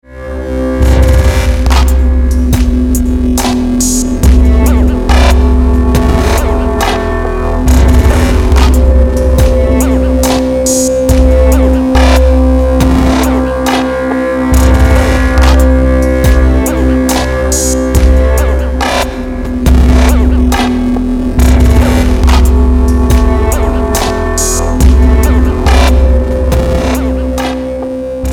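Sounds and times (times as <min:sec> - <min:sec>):
glitch-hop ringtone: 0:00.8 - 0:28.3.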